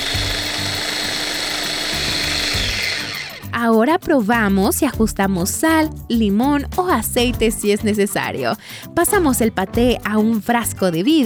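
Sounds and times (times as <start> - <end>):
food processor blending pâté: 0.0 - 3.6
speech: 3.6 - 11.2.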